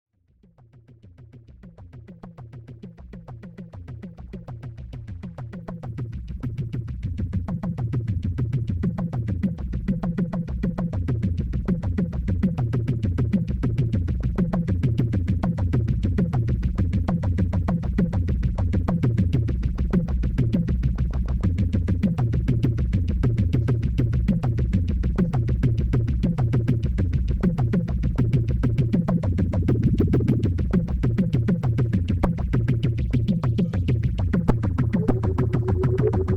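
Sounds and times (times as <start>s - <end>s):
drum: 3.1s - 36.3s.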